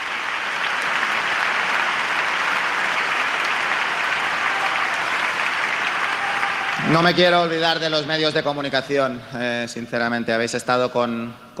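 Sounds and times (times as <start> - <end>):
audience ovation and applause: 0.0 - 8.0
speech: 6.9 - 11.5.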